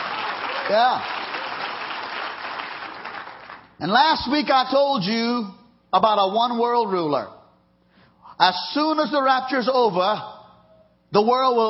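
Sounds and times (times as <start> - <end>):
crowd clapping hands: 0.0 - 3.8
speech: 0.7 - 1.2, 3.8 - 7.4, 8.4 - 10.3, 11.1 - 11.6.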